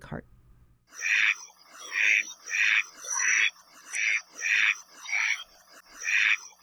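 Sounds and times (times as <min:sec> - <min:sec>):
Hawaiian duck quacking: 0:01.0 - 0:05.4, 0:06.0 - 0:06.4.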